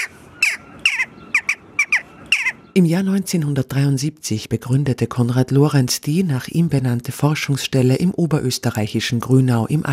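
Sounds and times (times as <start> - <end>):
Western Jackdaw kya calls: 0.0 - 2.8
speech: 2.8 - 9.9.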